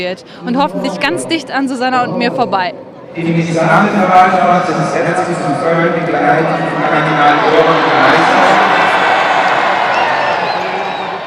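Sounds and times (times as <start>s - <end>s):
speech: 0.0s - 8.6s
large crowd cheering and clapping as Pope Francis drives past: 6.1s - 11.2s.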